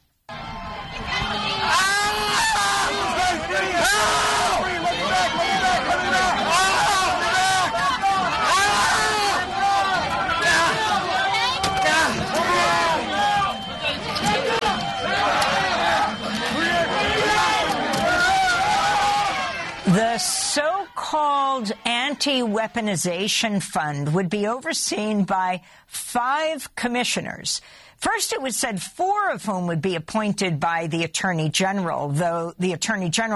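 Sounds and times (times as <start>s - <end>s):
higher cries: 0.3s - 22.8s
rioting mob shouting and screaming: 0.3s - 22.9s
speech: 21.6s - 33.3s.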